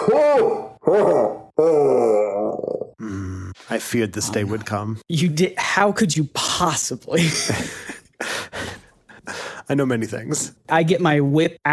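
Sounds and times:
speech: 0.0 - 1.4, 3.8 - 7.9, 9.7 - 11.7
booming monster roar imitated by a human voice: 0.0 - 3.6.

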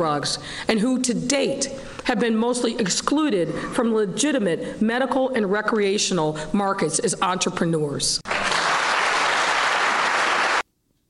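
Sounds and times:
speech: 0.0 - 8.3
crowd applause: 8.3 - 10.7.

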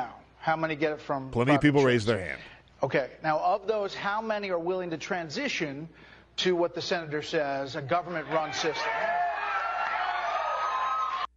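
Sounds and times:
speech: 0.4 - 9.1
crowd cheering with whoops and shouts: 8.2 - 11.3.

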